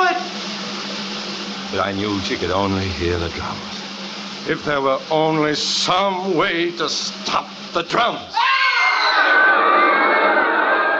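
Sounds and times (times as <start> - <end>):
speech: 1.7 - 3.8, 4.4 - 8.5
terrified roar of a circus crowd: 8.4 - 10.9.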